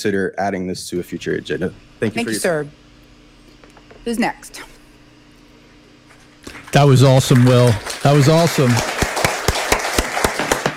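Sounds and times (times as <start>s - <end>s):
speech: 0.0s - 2.8s, 4.0s - 4.7s, 6.7s - 8.9s
audience applause: 6.4s - 10.7s.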